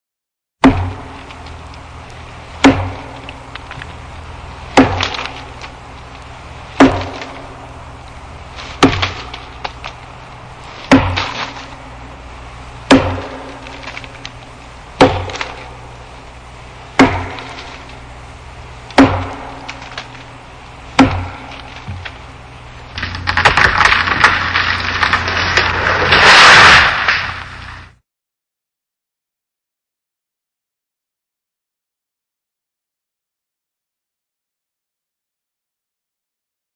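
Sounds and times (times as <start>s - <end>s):
tree being chopped: 0.6s - 28.0s.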